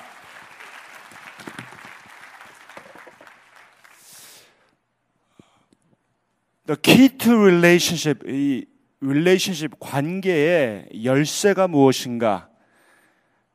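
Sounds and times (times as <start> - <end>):
audience applause: 0.0 - 4.2
speech: 6.7 - 12.5.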